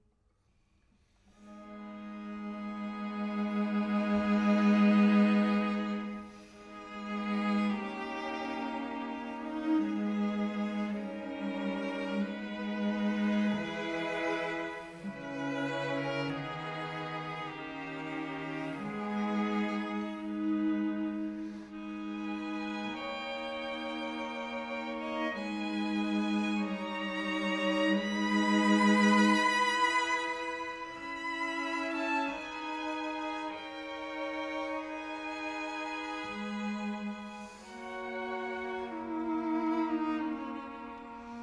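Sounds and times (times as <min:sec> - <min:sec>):
string quartet in C-sharp minor adagio: 0:01.2 - 0:41.4.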